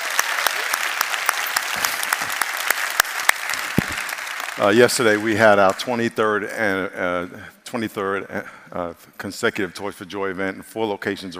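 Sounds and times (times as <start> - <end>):
church congregation applauding: 0.0 - 6.1
speech: 4.6 - 11.3.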